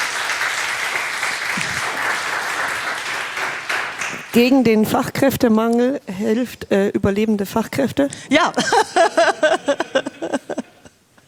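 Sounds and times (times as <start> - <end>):
audience applause: 0.0 - 4.5
laughter: 1.5 - 2.3, 8.4 - 11.0
speech: 4.4 - 10.4.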